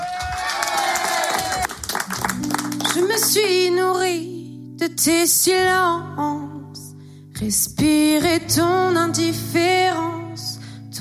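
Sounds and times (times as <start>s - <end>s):
audience clapping and cheering: 0.0s - 3.3s
speech: 4.9s - 6.6s, 7.4s - 10.2s.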